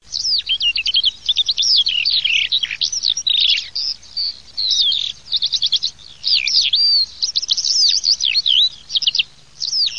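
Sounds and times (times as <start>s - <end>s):
Eurasian skylark song: 0.0s - 9.9s.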